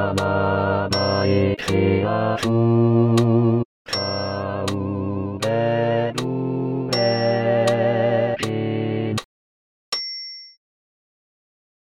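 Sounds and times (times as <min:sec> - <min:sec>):
tenor singing: 0:00.0 - 0:09.2.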